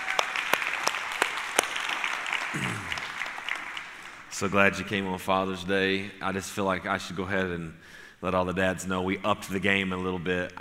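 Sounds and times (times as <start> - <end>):
audience applause for fathers: 0.0 - 4.2
speech: 4.4 - 10.5.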